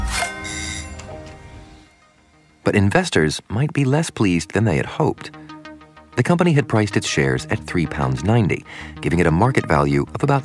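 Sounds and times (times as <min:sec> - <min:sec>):
bell ringing: 0:00.0 - 0:02.6
speech: 0:02.6 - 0:05.4, 0:06.2 - 0:10.4.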